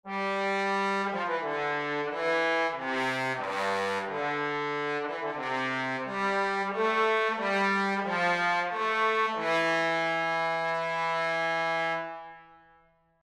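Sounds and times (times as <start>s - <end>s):
trombone: 0.1s - 12.4s.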